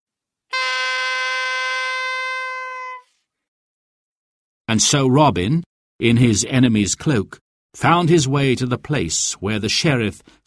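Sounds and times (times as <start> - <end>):
horn being blown: 0.5 - 3.1
speech: 4.7 - 10.4.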